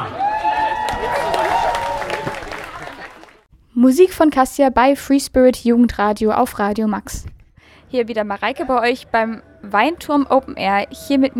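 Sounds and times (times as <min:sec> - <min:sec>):
audience applause: 0:00.0 - 0:03.5
speech: 0:03.8 - 0:07.3, 0:07.9 - 0:11.3.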